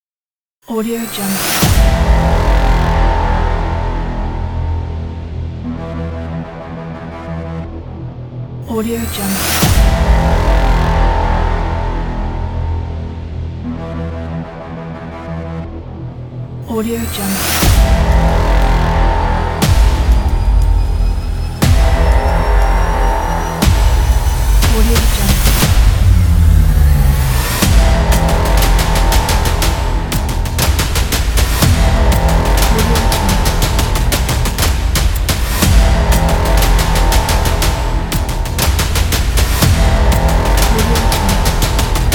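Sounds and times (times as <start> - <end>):
action hybrid trailer music: 0.7 - 42.1.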